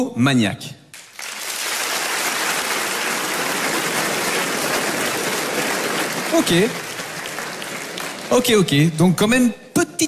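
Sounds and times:
speech: 0.0 - 0.8, 6.3 - 6.8, 8.3 - 10.0
audience applause: 1.0 - 9.0.

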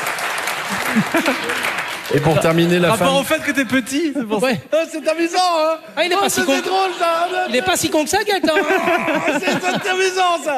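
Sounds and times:
audience applause: 0.0 - 4.0
laughter: 0.7 - 10.5
speech: 0.7 - 10.5.

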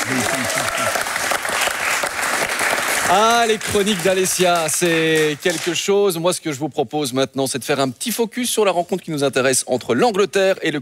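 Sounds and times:
audience applause: 0.0 - 5.7
speech: 3.1 - 10.8.

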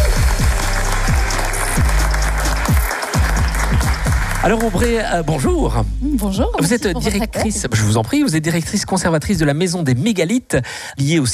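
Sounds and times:
crowd applause: 0.0 - 5.0
speech: 4.4 - 11.3.

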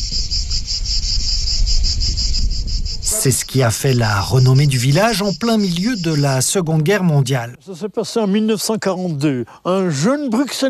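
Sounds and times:
cicadas singing: 0.0 - 7.9
speech: 3.1 - 10.6.

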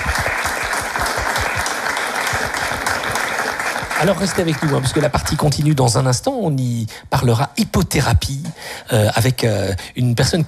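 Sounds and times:
audience applause: 0.0 - 5.7
speech: 4.0 - 10.4.

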